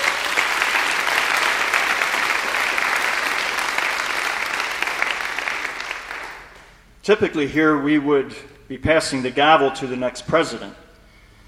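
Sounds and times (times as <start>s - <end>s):
audience applause: 0.0s - 6.7s
speech: 7.1s - 10.8s.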